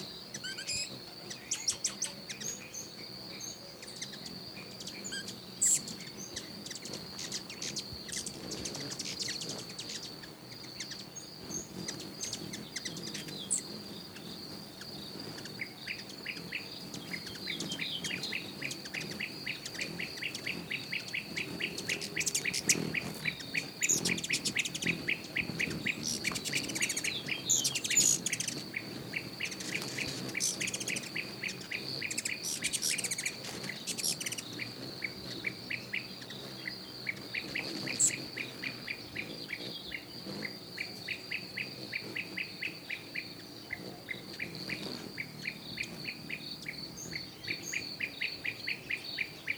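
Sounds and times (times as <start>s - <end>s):
birds chirping: 0.0s - 49.5s.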